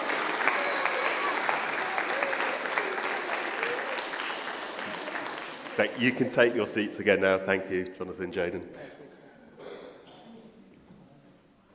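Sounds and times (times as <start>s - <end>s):
audience cheering and applauding: 0.0s - 6.2s
speech: 5.8s - 9.0s.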